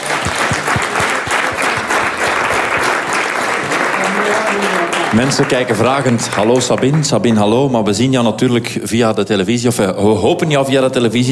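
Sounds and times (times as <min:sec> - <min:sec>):
applause: 0:00.0 - 0:07.7
speech: 0:05.1 - 0:11.3.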